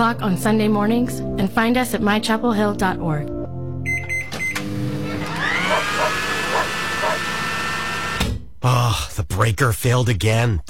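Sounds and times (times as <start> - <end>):
speech: 0.0 - 3.4, 8.6 - 10.6
short electronic beeps: 3.9 - 4.6
hair dryer running: 4.6 - 8.3.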